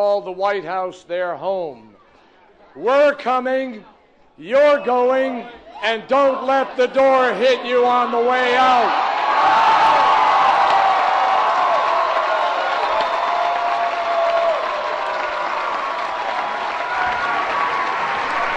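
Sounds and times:
speech: 0:00.0 - 0:01.9, 0:02.8 - 0:09.6
crowd of supporters cheering: 0:05.7 - 0:18.5.

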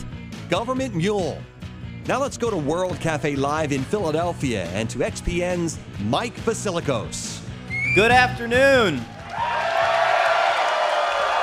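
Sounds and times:
speech: 0:00.5 - 0:01.5, 0:02.1 - 0:07.4, 0:08.0 - 0:09.5
live concert audience cheering and applauding at World Cafe Live in Philadelphia: 0:07.7 - 0:11.4.

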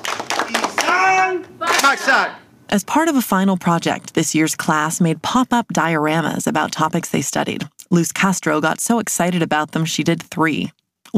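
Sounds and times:
ninth-grade ethnic studies students doing a unity clap: 0:00.0 - 0:02.2
young voices shouting together: 0:00.5 - 0:02.5
speech: 0:01.2 - 0:11.1.

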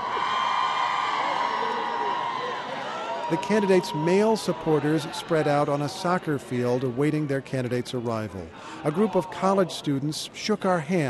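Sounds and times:
women cheering in the bleachers at a Saeed Jalili election rally in Iran: 0:00.0 - 0:05.7
speech: 0:03.3 - 0:11.0.

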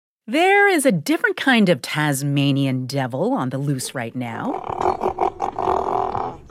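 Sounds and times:
speech: 0:00.3 - 0:05.0
southern elephant seal roaring: 0:04.5 - 0:06.4.

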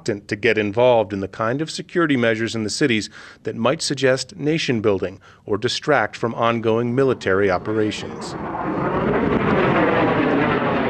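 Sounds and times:
speech: 0:00.0 - 0:08.8
U.S. Air Force fighter jet circling above Bagram Air Base: 0:06.6 - 0:10.8.

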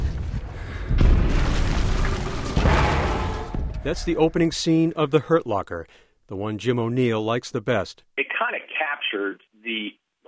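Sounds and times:
bomb explosion in a film scene: 0:00.0 - 0:04.4
speech: 0:03.8 - 0:10.0.

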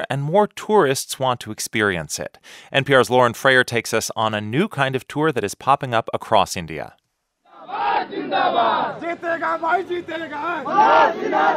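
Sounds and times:
speech: 0:00.1 - 0:07.0, 0:08.0 - 0:11.5
villagers chanting praise for an Indian cabinet minister: 0:07.5 - 0:11.5.

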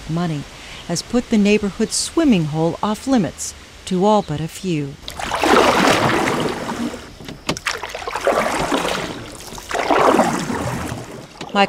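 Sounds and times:
speech: 0:00.1 - 0:06.2
canoe paddle strokes splashing through creek water: 0:05.0 - 0:11.6.

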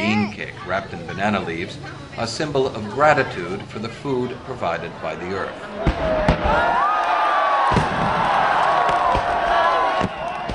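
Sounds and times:
speech: 0:00.2 - 0:06.9
crowd roar: 0:04.9 - 0:10.5
fireworks bangs: 0:05.8 - 0:06.8, 0:07.6 - 0:10.5.

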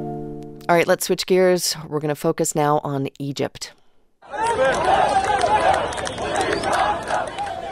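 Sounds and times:
speech: 0:00.7 - 0:03.8
anti-government protest crowd shouting and chanting in the streets of Cairo: 0:04.2 - 0:07.7.

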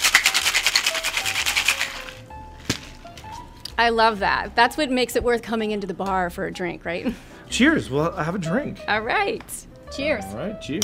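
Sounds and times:
ice rattling in a cocktail shaker tin: 0:00.0 - 0:02.3
speech: 0:03.8 - 0:10.8.

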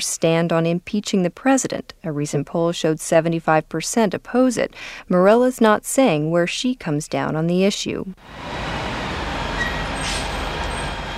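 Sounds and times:
speech: 0:00.0 - 0:08.9
bus stop street ambience in downtown Bethesda: 0:08.2 - 0:11.1.

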